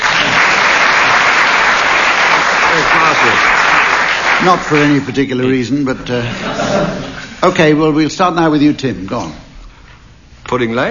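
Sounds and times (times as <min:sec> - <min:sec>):
audience applause: 0:00.0 - 0:05.4
speech: 0:04.4 - 0:09.4, 0:10.5 - 0:10.8
laughter: 0:06.0 - 0:07.4.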